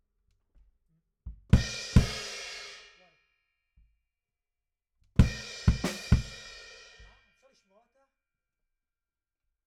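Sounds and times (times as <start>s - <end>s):
bass drum: 1.3s - 2.3s, 5.2s - 7.2s.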